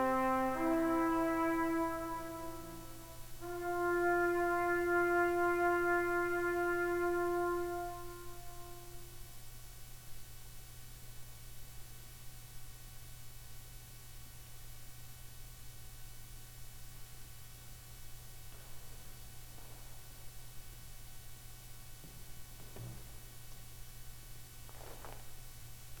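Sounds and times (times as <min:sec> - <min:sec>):
cello suite bourree: 0:00.0 - 0:09.0.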